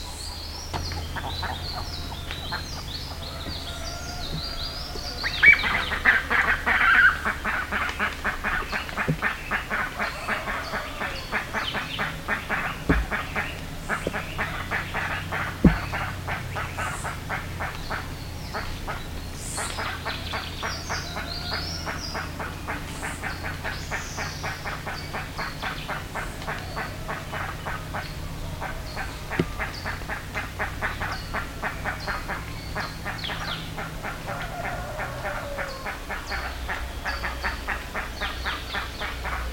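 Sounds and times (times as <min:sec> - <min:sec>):
bird calls: 0:00.0 - 0:39.5
hum: 0:00.0 - 0:39.5
speech: 0:00.8 - 0:03.0
dull thump: 0:01.8 - 0:06.1, 0:08.2 - 0:10.6, 0:11.4 - 0:16.9, 0:29.2 - 0:30.0.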